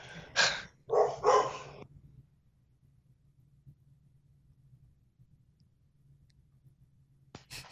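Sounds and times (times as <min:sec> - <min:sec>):
faint low hum: 0:00.0 - 0:07.7
dogs barking: 0:00.4 - 0:01.8.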